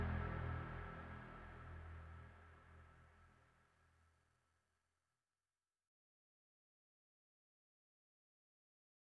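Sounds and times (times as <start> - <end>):
overlay drone: 0.0 - 2.2.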